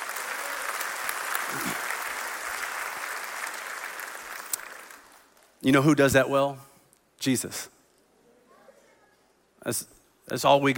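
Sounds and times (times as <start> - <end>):
audience clapping hands: 0.0 - 5.6
speech: 5.6 - 7.8, 9.6 - 10.7.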